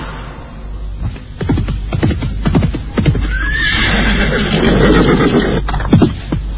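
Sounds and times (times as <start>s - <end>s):
horse hoof thuds and shuffling: 1.0s - 3.5s, 5.6s - 6.5s
horse neighing: 3.2s - 5.7s.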